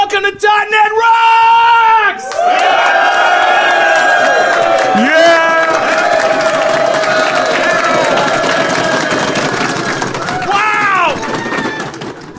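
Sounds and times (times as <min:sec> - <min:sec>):
speech: 0:00.1 - 0:01.2
live audience clapping: 0:02.2 - 0:12.3.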